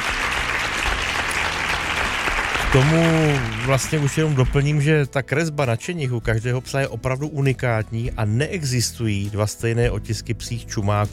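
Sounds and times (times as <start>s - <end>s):
studio audience applause on a television quiz show: 0.0s - 4.9s
speech: 2.7s - 11.1s.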